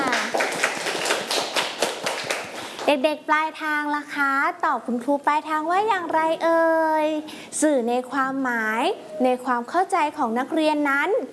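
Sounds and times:
children clapping for a classmate during a lesson: 0:00.0 - 0:02.9
speech: 0:02.9 - 0:11.3.

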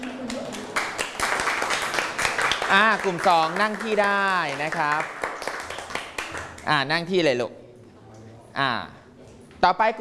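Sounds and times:
applause for a student group: 0:00.0 - 0:06.8
speech: 0:02.7 - 0:05.2, 0:06.6 - 0:07.6, 0:08.6 - 0:09.0, 0:09.6 - 0:09.9.

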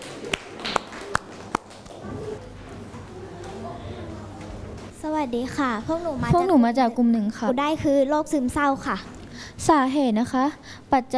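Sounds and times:
classroom applause: 0:00.0 - 0:02.4
speech: 0:05.2 - 0:11.1.

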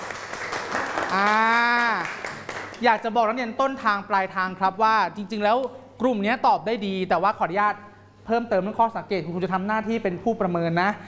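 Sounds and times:
audience clapping for a student group: 0:00.0 - 0:03.0
speech: 0:01.1 - 0:01.5, 0:02.8 - 0:11.0.

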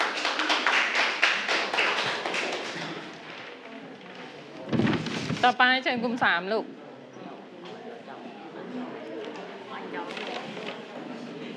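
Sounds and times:
classroom clapping for a group: 0:00.0 - 0:03.7
speech: 0:05.4 - 0:06.8.

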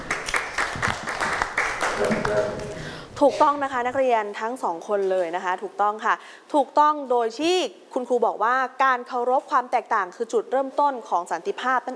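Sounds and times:
classroom applause: 0:00.0 - 0:02.9
speech: 0:02.0 - 0:11.9.

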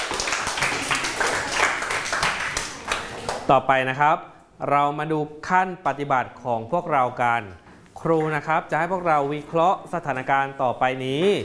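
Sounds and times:
clapping: 0:00.0 - 0:03.5
speech: 0:03.5 - 0:11.4.

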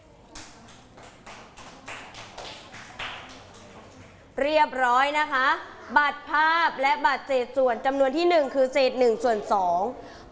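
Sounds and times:
classroom children clapping: 0:00.4 - 0:04.2
speech: 0:04.4 - 0:10.1.

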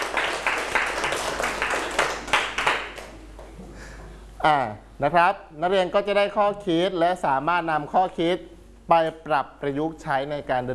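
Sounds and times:
students clapping: 0:00.0 - 0:03.2
speech: 0:04.4 - 0:10.7.

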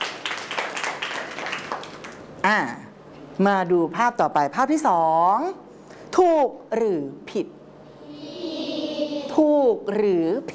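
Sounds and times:
group of children clapping hands: 0:00.0 - 0:02.3
speech: 0:02.4 - 0:02.8, 0:03.4 - 0:05.6, 0:06.2 - 0:07.6, 0:09.4 - 0:10.5.

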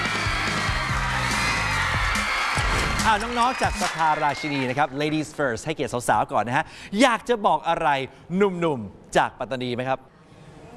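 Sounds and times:
crowd cheering and whooping to welcome two school student teams: 0:00.0 - 0:05.2
speech: 0:03.1 - 0:10.1.

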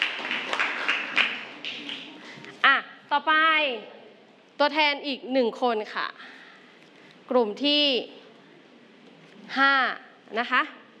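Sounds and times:
group clapping hands: 0:00.0 - 0:02.5
speech: 0:03.2 - 0:04.0, 0:04.6 - 0:06.4, 0:07.3 - 0:08.2, 0:09.5 - 0:10.8.

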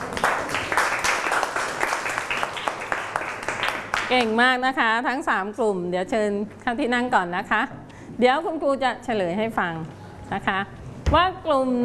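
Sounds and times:
classroom clapping: 0:00.0 - 0:04.3
speech: 0:04.1 - 0:11.8.

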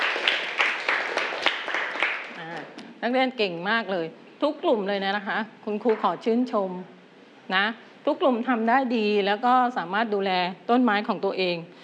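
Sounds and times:
students in a classroom clapping rhythmically for group 3: 0:00.0 - 0:02.4
speech: 0:03.0 - 0:11.8.

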